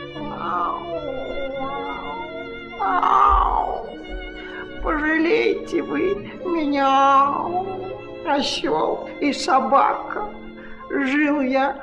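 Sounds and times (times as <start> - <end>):
cat sitting on a road meowing sadly: 0.1 - 4.0
speech: 5.3 - 10.4, 11.0 - 11.8.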